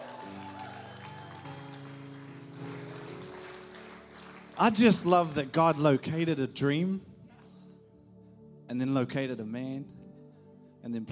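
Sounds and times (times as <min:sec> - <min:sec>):
audience applause: 0:00.0 - 0:06.1
keyboard or organ chords: 0:00.0 - 0:11.0
speech: 0:04.6 - 0:07.1, 0:08.7 - 0:10.0, 0:10.8 - 0:11.0.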